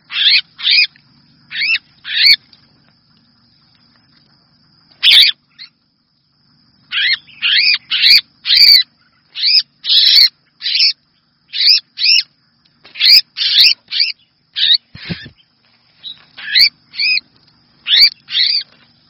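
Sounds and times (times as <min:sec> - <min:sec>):
red-whiskered bulbul distress call: 0:00.0 - 0:00.9, 0:01.5 - 0:02.5, 0:04.9 - 0:05.8, 0:06.8 - 0:19.0.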